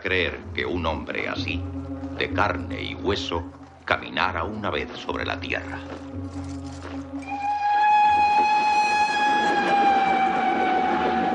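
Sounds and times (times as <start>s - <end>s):
speech: 0.0s - 7.6s
steam train crossing a plain at night: 7.2s - 11.3s.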